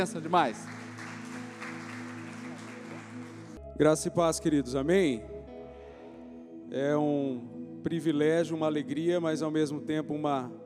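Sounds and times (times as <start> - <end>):
speech: 0.0 - 0.8, 3.8 - 5.3, 6.7 - 10.6
audience applauding: 0.0 - 3.6.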